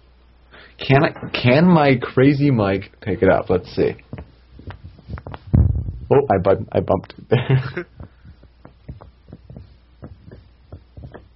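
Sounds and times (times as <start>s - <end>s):
steady hum: 0.0s - 11.3s
speech: 0.9s - 4.2s, 6.2s - 8.0s
loose shoulder joint thudding: 4.0s - 6.7s, 7.9s - 11.3s.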